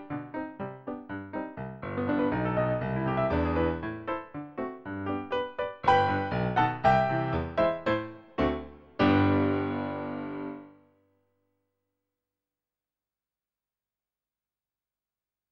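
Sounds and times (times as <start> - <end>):
piano: 0.0 - 11.0.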